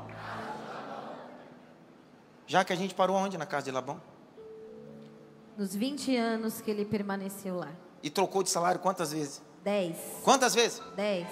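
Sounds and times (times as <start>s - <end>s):
large crowd shouting and cheering: 0.0s - 1.5s
speech: 2.5s - 4.1s, 5.6s - 11.2s.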